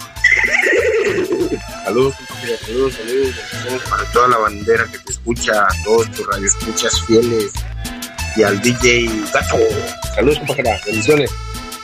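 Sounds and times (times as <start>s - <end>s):
laughter: 0.0s - 5.0s, 8.4s - 11.2s
voice imitating a horse whinny: 0.1s - 1.9s
speech: 1.8s - 7.7s, 8.4s - 11.4s.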